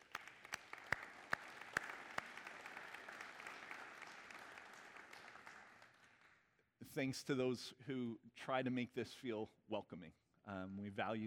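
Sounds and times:
audience clapping: 0.0s - 6.6s
speech: 6.9s - 11.2s.

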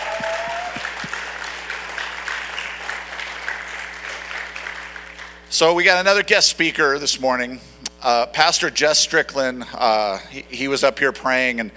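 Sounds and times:
audience applause: 0.0s - 5.4s
speech: 5.5s - 11.7s.

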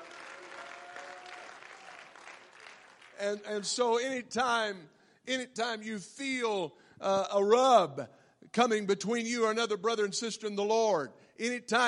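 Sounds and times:
audience clapping hands: 0.0s - 3.7s
speech: 3.2s - 11.8s.

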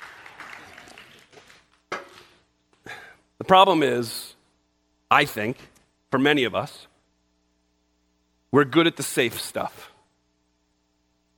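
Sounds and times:
audience applause: 0.0s - 1.8s
speech: 3.5s - 4.2s, 5.1s - 6.9s, 8.5s - 9.9s.

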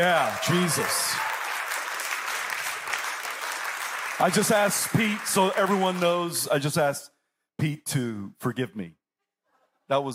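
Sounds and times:
speech: 0.0s - 1.2s, 4.2s - 9.0s, 9.9s - 10.1s
crowd applause: 0.0s - 6.5s.

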